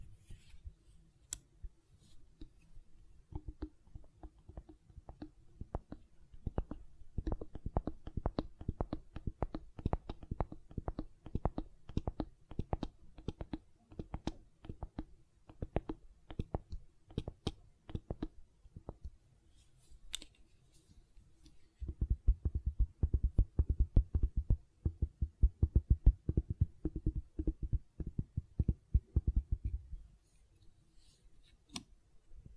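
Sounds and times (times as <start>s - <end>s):
gentle silicon tapping and squishing: 3.2s - 19.2s, 21.4s - 30.0s.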